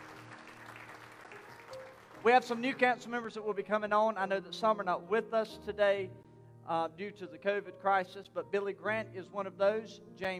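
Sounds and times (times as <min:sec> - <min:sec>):
audience hand clapping: 0:00.0 - 0:03.1
speech: 0:02.2 - 0:10.3.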